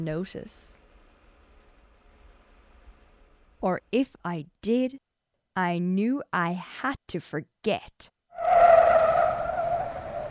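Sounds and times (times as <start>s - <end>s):
speech: 0.0s - 0.8s, 3.6s - 5.0s, 5.6s - 8.5s
car tires skidding on pavement: 8.4s - 10.2s.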